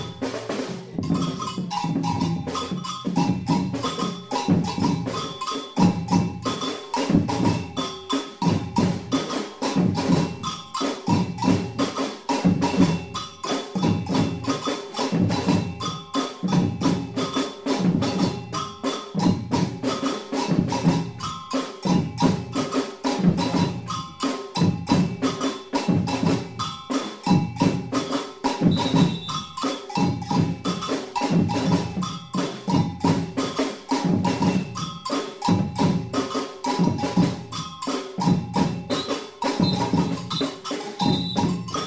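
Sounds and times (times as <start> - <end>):
afoxe batucada drumming break and intro: 0.0 - 41.8.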